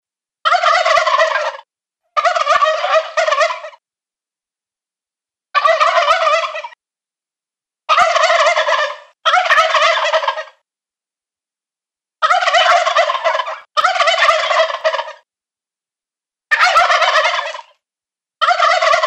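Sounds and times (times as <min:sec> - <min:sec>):
adult male wild turkey gobbling: 0:00.5 - 0:03.8, 0:05.6 - 0:06.8, 0:07.9 - 0:10.6, 0:12.2 - 0:15.2, 0:16.5 - 0:17.8, 0:18.4 - 0:19.0.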